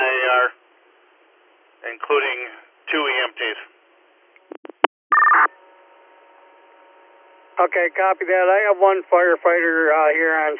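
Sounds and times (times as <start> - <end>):
speech: 1.9 - 3.7, 7.6 - 10.5
radio dispatch paging tones: 4.6 - 5.5.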